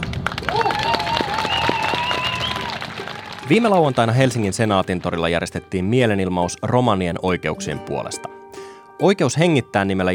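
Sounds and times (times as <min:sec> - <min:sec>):
crowd applause at a demonstration: 0:00.0 - 0:05.4
speech: 0:03.5 - 0:08.4, 0:09.0 - 0:10.1.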